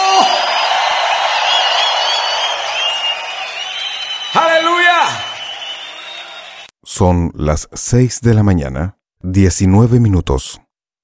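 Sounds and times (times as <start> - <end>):
crowd shouting a cheer of joy: 0.0 - 6.7
speech: 7.0 - 10.6.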